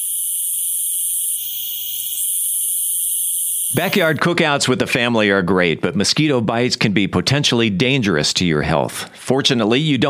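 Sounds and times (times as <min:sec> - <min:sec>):
periodical cicada chorus buzzing: 0:00.0 - 0:04.2
speech: 0:03.7 - 0:10.0.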